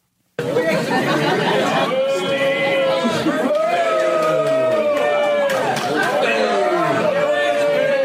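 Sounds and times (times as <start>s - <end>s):
laughter: 0.4s - 7.8s
large crowd booing at a live show: 0.4s - 8.0s.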